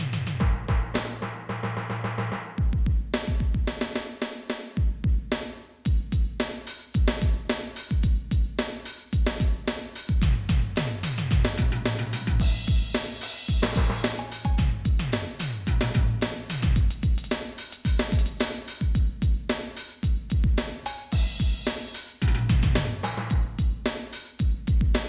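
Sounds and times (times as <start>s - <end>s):
drum: 0.0s - 25.0s
tam-tam: 11.5s - 14.9s, 20.8s - 23.4s.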